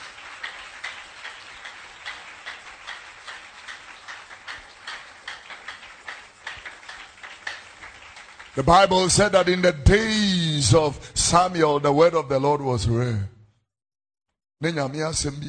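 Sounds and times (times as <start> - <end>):
audience clapping hands: 0.0 - 10.0
speech: 8.6 - 13.3, 14.6 - 15.4.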